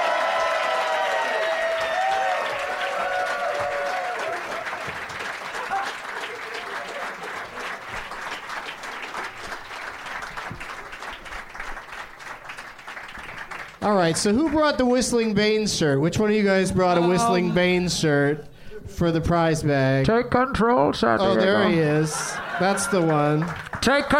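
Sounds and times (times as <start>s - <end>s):
cheering: 0.0s - 8.2s, 22.1s - 24.1s
audience applause welcoming comedians: 0.0s - 14.9s, 22.2s - 24.1s
speech: 13.9s - 24.1s
laughter: 21.6s - 23.6s.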